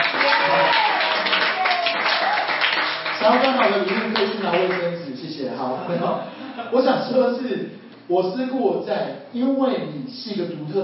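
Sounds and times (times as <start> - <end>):
students in a lecture hall applauding: 0.0 - 5.0
speech: 3.3 - 4.8, 6.1 - 10.8.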